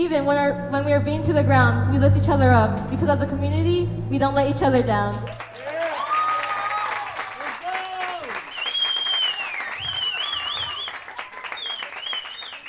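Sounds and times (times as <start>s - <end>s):
speech: 0.0s - 5.4s
audience applause: 5.3s - 12.6s.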